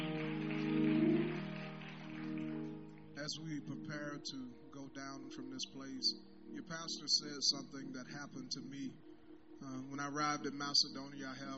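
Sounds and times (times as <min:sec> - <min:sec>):
audience clapping hands in praise: 0:00.0 - 0:03.2
low sustained hum or organ tone: 0:00.0 - 0:11.5
speech: 0:03.2 - 0:11.5.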